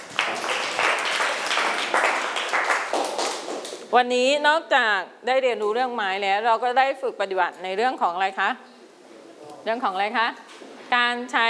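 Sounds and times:
classroom applause for a classmate: 0.0 - 3.9
speech: 3.9 - 8.7, 9.6 - 11.4.

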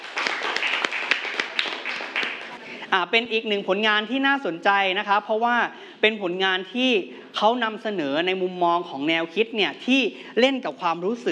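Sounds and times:
audience clapping: 0.0 - 2.8
speech: 2.9 - 11.3.

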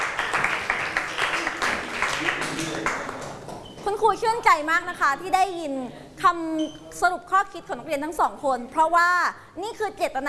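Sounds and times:
students clapping for two classmates: 0.0 - 3.6
speech: 4.0 - 10.2.

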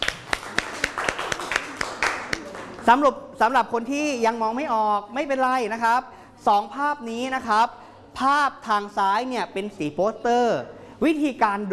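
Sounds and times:
hand claps: 0.0 - 2.9
speech: 2.9 - 11.7.

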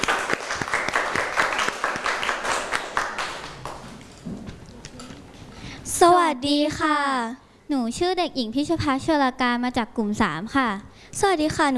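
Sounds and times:
classroom applause: 0.0 - 3.9
speech: 6.3 - 11.7.

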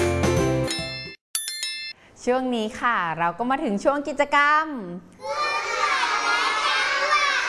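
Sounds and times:
speech: 2.2 - 5.4
group of children shouting answers loudly together: 5.2 - 7.4.

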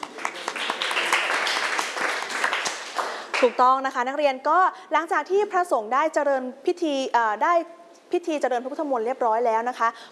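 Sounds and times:
classroom applause, students clapping: 0.0 - 3.6
speech: 3.4 - 10.0.

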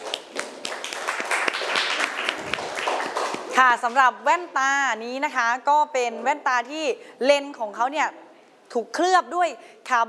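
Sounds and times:
audience applause: 0.0 - 3.5
speech: 3.6 - 10.0.

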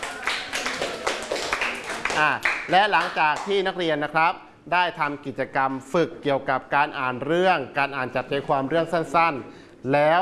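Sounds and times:
students clapping in a classroom after a group quiz: 0.0 - 3.5
speech: 2.2 - 10.2.

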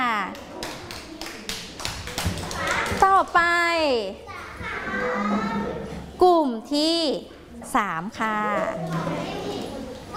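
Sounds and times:
children clapping: 0.2 - 3.2
speech: 3.2 - 9.5.

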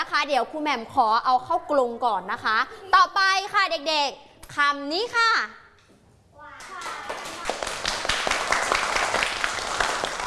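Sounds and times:
speech: 0.2 - 5.6
children clapping: 6.6 - 10.2.

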